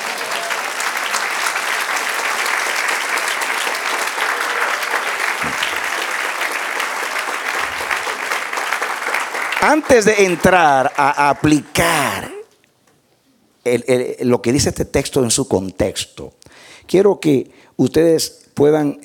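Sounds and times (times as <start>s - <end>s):
audience applauding: 0.0s - 12.3s
speech: 9.6s - 12.3s, 13.6s - 19.0s.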